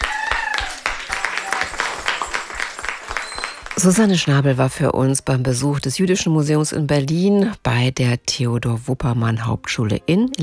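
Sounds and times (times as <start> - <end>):
applause: 0.0 - 4.4
speech: 3.8 - 10.4.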